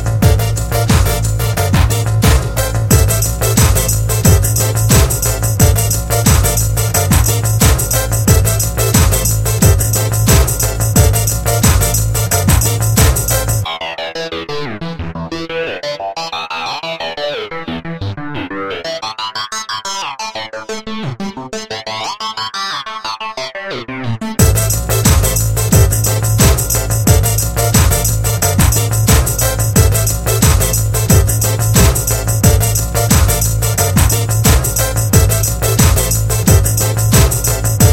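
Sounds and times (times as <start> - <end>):
rhythm track: 0.0 - 13.6, 24.4 - 37.9.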